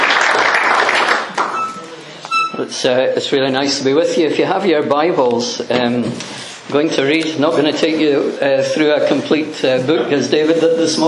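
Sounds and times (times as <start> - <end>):
audience applause welcoming a speaker at a gospel gathering: 0.0 - 2.0
speech: 2.7 - 11.0.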